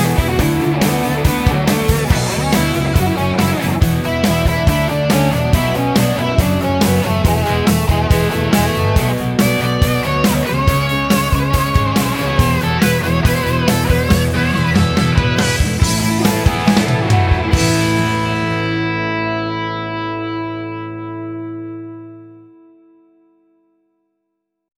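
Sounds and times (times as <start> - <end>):
fast music: 0.0 - 19.7.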